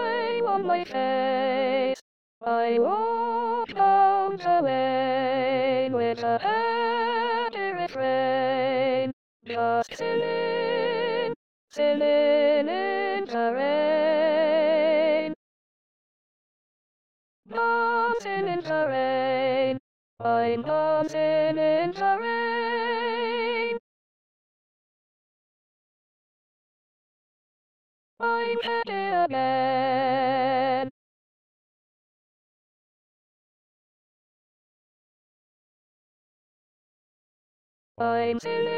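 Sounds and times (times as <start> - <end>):
SATB soprano voice singing E flat: 0.0 - 15.4, 17.5 - 23.8, 28.2 - 30.9, 38.0 - 38.7.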